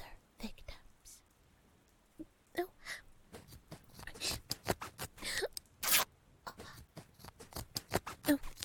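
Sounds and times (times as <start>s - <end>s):
clothes being cut with a knife: 3.3s - 5.2s, 5.8s - 8.6s
fabric ripping: 4.0s - 5.1s, 5.8s - 6.1s, 7.0s - 8.6s.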